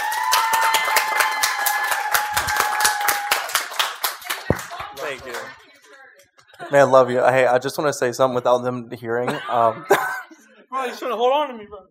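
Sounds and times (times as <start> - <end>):
round of applause: 0.0 - 6.6
laughter: 6.5 - 7.3, 9.1 - 11.2
speech: 6.7 - 10.0, 10.8 - 11.8.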